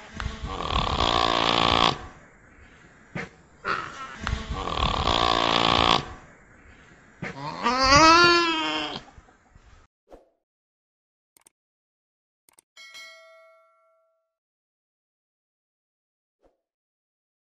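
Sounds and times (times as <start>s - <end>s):
nutria: 0.0s - 9.9s.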